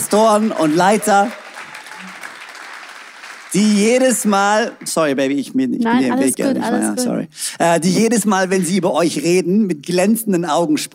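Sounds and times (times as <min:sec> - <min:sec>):
audience applause: 0:00.0 - 0:05.2
speech: 0:00.1 - 0:01.4, 0:03.5 - 0:10.9.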